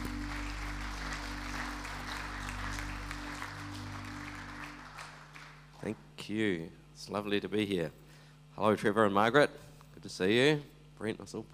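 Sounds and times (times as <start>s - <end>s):
audience applause: 0.0s - 5.8s
speech: 5.8s - 8.0s, 8.6s - 11.5s.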